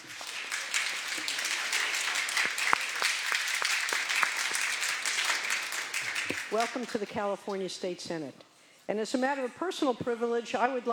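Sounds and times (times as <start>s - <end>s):
crowd applauding: 0.0s - 7.0s
speech: 6.5s - 10.9s.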